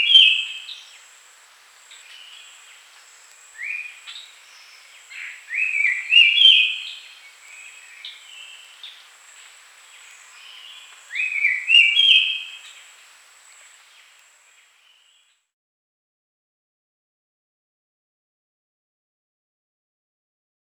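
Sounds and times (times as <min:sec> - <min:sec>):
White-chested babbler song: 0:00.0 - 0:00.9, 0:03.4 - 0:09.0, 0:10.0 - 0:12.9.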